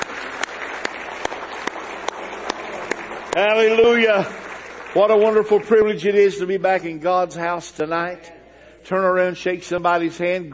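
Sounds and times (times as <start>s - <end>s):
audience clapping hands: 0.0s - 6.9s
speech: 3.4s - 10.5s.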